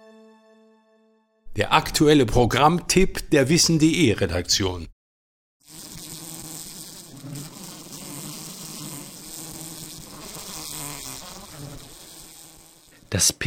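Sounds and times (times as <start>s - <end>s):
speech: 1.6s - 4.9s, 13.1s - 13.4s
wasps, flies and mosquitoes buzzing: 5.6s - 13.1s.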